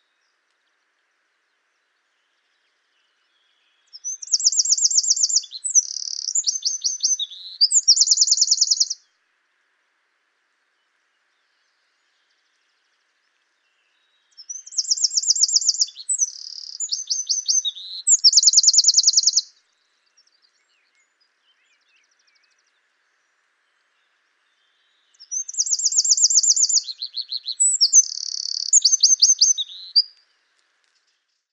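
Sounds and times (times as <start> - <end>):
Eurasian wren singing: 3.9 - 9.0, 14.4 - 19.5, 25.0 - 30.1.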